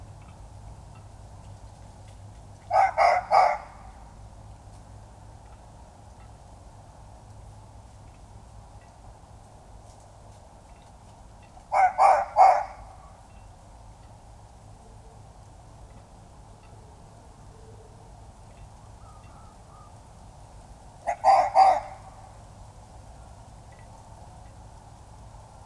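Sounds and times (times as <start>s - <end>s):
red fox Vulpes vulpes: 2.7s - 4.0s, 11.7s - 13.2s, 21.1s - 22.3s.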